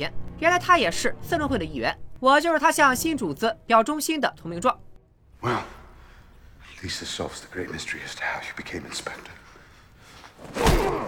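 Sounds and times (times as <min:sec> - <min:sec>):
speech: 0:00.0 - 0:05.7, 0:06.8 - 0:09.4, 0:10.4 - 0:11.0
punch hitting someone: 0:10.5 - 0:11.0.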